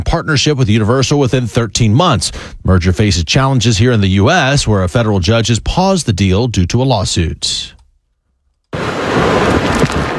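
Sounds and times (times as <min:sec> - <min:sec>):
speech: 0:00.1 - 0:07.8
Tropical Storm Bertha wind and rain making landfall: 0:08.7 - 0:10.1.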